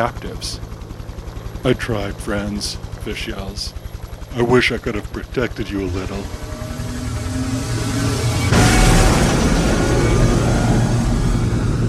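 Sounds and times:
speech: 0:00.0 - 0:00.7, 0:01.6 - 0:03.8, 0:04.4 - 0:06.6
sky being torn in half: 0:05.8 - 0:11.8
rushing thunder with deep booming undertones: 0:07.4 - 0:11.8.

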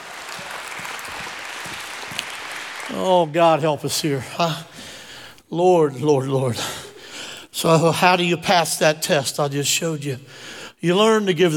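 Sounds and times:
audience hand clapping: 0:00.0 - 0:03.3
speech: 0:02.9 - 0:04.8, 0:05.5 - 0:06.7, 0:07.6 - 0:11.5.

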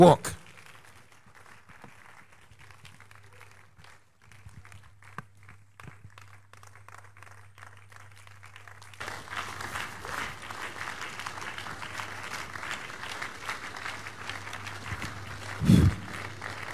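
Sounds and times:
speech: 0:00.0 - 0:00.4
crowd clapping: 0:00.0 - 0:16.7
low hum: 0:15.6 - 0:16.5.

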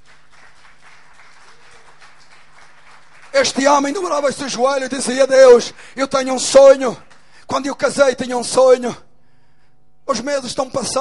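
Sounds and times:
audience applauding: 0:00.0 - 0:04.7
speech: 0:03.4 - 0:09.0, 0:10.1 - 0:10.9.

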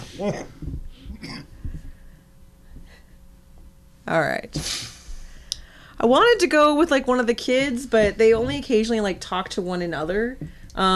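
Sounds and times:
man coughing: 0:00.0 - 0:01.5
speech: 0:00.2 - 0:00.8, 0:04.1 - 0:04.9, 0:06.0 - 0:10.9.

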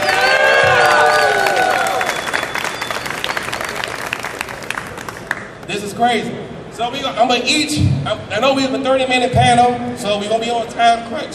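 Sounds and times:
high-pitched cheers and whoops: 0:00.0 - 0:02.7
crowd applause: 0:00.0 - 0:05.6
speech: 0:06.0 - 0:11.3.

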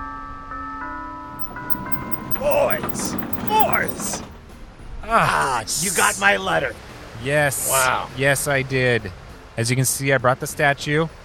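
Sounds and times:
doorbell ringing: 0:01.4 - 0:04.3
speech: 0:02.8 - 0:04.3, 0:05.1 - 0:11.2.

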